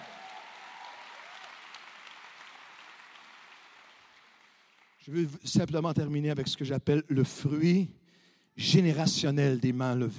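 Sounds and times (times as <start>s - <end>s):
audience applause: 0.0s - 5.1s
speech: 5.0s - 8.0s, 8.6s - 10.1s.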